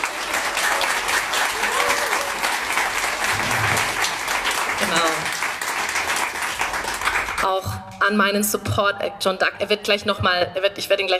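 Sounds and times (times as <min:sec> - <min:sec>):
audience applause: 0:00.0 - 0:07.5
speech: 0:07.5 - 0:11.1.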